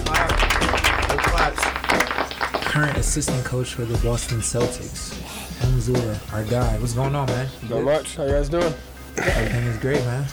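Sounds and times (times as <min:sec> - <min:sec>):
small group of people clapping for a guest: 0:00.0 - 0:03.6
speech: 0:02.8 - 0:10.3.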